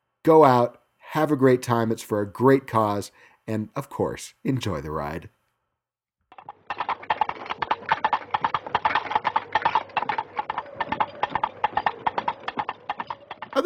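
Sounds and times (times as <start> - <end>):
speech: 0.2 - 5.4
horse hoofbeats of a knight riding up to a castle: 6.3 - 13.6.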